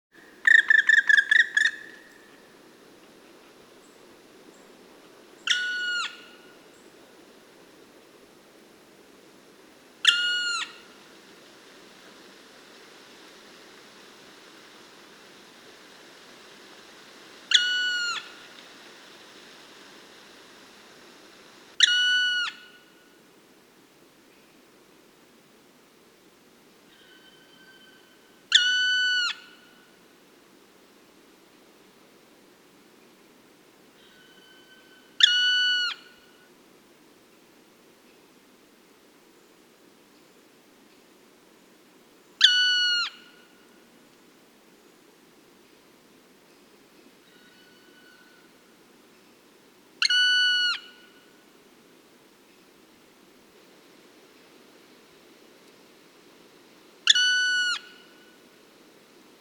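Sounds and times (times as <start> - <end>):
black woodpecker calling: 0.4 - 2.2, 5.5 - 6.5, 17.5 - 18.4, 21.8 - 22.8, 26.9 - 29.6, 34.0 - 36.2, 42.4 - 43.4, 50.0 - 51.2, 57.1 - 58.2.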